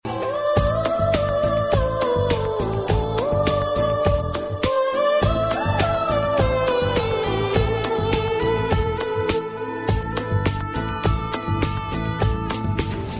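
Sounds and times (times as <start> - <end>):
rhythmic theme music: 0.1 - 13.1.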